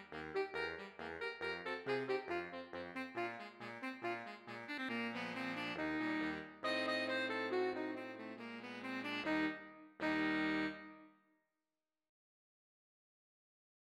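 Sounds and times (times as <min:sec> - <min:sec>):
polka music: 0:00.0 - 0:11.0.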